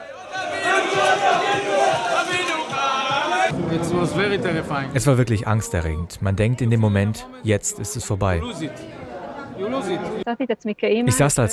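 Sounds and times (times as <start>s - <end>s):
crowd cheering in welcome at airport: 0.0s - 5.0s, 8.4s - 10.2s
speech: 3.8s - 9.0s, 9.6s - 11.5s.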